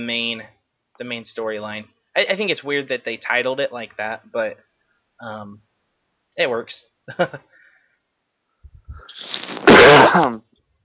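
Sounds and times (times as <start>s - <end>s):
speech: 0.0s - 5.7s, 6.4s - 7.5s, 8.9s - 10.5s
person coughing: 9.4s - 10.4s.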